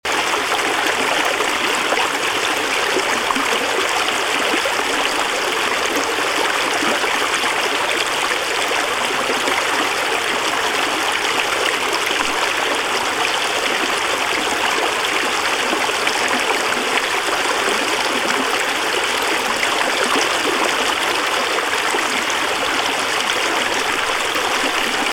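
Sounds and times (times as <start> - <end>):
water flowing: 0.1 - 25.1.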